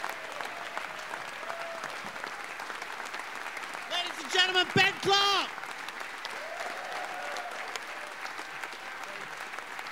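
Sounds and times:
audience applause: 0.0 - 9.9
speech: 4.3 - 5.6.

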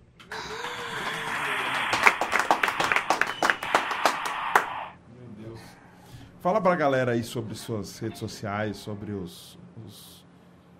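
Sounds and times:
applause: 0.4 - 5.0
speech: 6.4 - 10.2.

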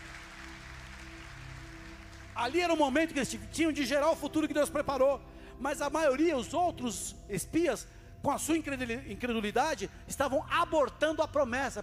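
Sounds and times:
audience applause: 0.0 - 2.8
speech: 2.4 - 11.8.

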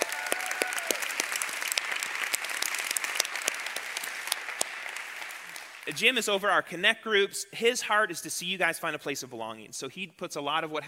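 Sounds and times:
audience applause: 0.0 - 6.0
speech: 5.9 - 10.8.

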